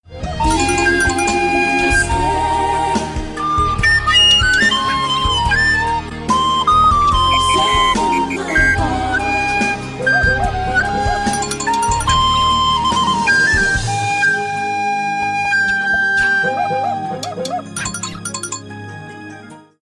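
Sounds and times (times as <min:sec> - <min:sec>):
flute: 0:00.1 - 0:18.6.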